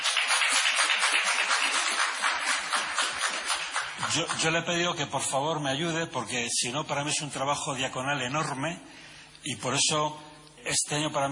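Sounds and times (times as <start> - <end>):
applause: 0.0 - 4.8
speech: 4.0 - 11.3.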